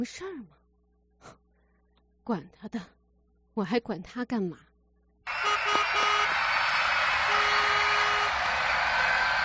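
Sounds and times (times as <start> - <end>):
speech: 0.0 - 0.6, 2.3 - 3.0, 3.6 - 4.7
dense roar of traffic outside: 5.3 - 9.4
sirens outside: 5.3 - 9.4.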